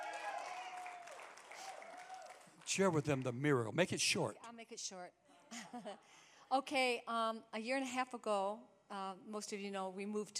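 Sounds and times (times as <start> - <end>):
audience applauding a man's wife called onto the stage: 0.0 - 3.6
speech: 2.7 - 10.3.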